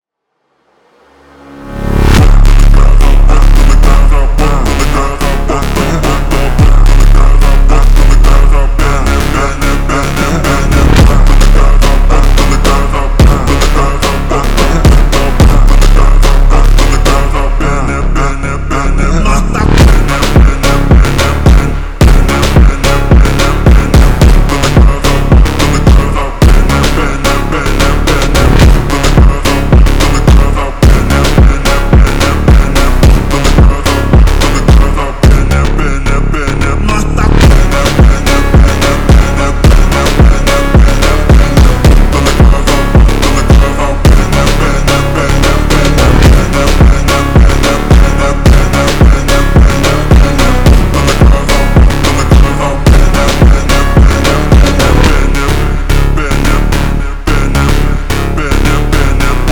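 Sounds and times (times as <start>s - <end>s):
slowed funk music with reverb: 1.6s - 59.5s.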